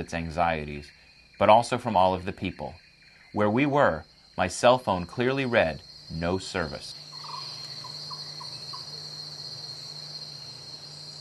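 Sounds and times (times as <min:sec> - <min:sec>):
speech: 0:00.0 - 0:07.0
insects chirping in a rainforest: 0:00.0 - 0:11.1.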